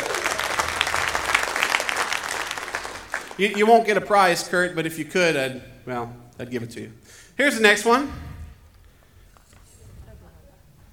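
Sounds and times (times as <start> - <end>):
crowd applauding: 0.0 - 4.8
speech: 3.4 - 8.3.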